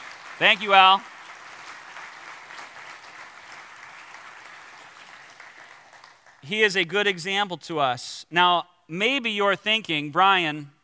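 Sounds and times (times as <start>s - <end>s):
audience applause: 0.0s - 6.4s
speech: 0.4s - 1.1s, 6.4s - 10.8s.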